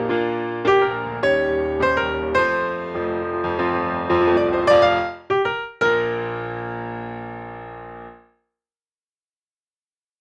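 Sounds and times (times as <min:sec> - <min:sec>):
folk melody: 0:00.1 - 0:06.3.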